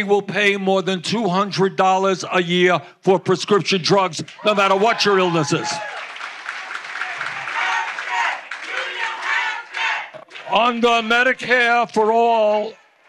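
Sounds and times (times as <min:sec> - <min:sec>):
speech: 0:00.0 - 0:06.0, 0:10.5 - 0:12.8
crowd chanting and interrupting a speech: 0:07.0 - 0:10.2.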